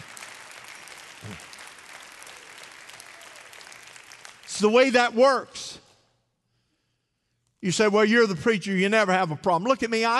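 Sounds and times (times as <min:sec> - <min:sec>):
half-hearted audience clapping: 0:00.0 - 0:05.1
speech: 0:04.6 - 0:05.6, 0:07.6 - 0:10.1.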